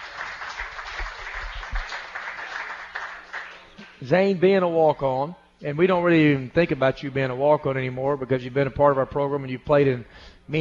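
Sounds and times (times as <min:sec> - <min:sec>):
audience applause: 0:00.0 - 0:04.0
speech: 0:04.0 - 0:10.5.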